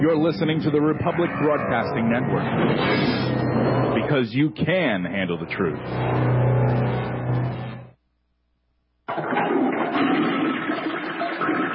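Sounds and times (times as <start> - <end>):
speech: 0.0 - 7.1
toilet flushing: 9.1 - 11.7.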